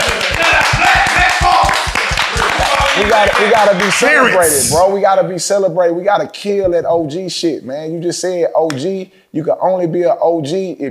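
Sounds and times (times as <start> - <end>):
rapid clapping: 0.0 - 4.3
dense noise: 0.0 - 10.8
speech: 3.2 - 10.8.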